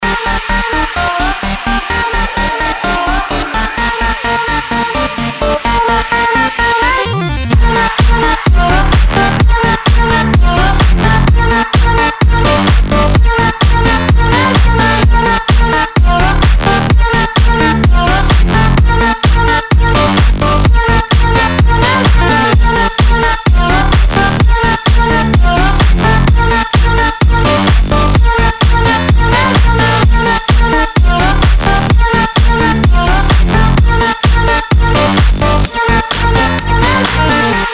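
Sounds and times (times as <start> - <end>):
dutch house music: 0.0 - 37.7.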